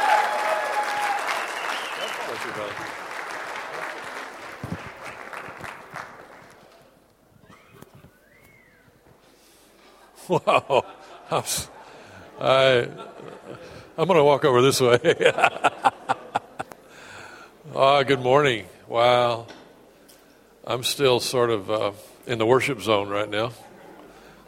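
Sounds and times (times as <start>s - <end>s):
round of applause: 0.0s - 6.8s
laughter: 10.0s - 13.9s, 14.8s - 16.8s, 23.6s - 24.4s
speech: 10.3s - 11.7s, 12.4s - 13.1s, 14.0s - 15.7s, 17.8s - 19.6s, 20.7s - 23.7s.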